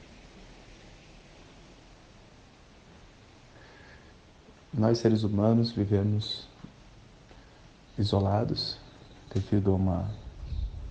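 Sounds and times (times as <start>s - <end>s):
wind rustling through plants: 0.0s - 10.8s
speech: 4.7s - 6.5s, 8.0s - 10.2s.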